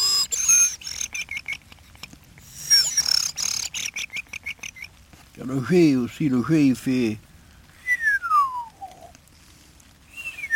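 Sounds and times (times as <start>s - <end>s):
person whistling an imitation of thrush song: 0.0s - 1.3s, 2.5s - 4.2s, 7.8s - 9.1s, 10.1s - 10.5s
speech: 5.4s - 7.3s.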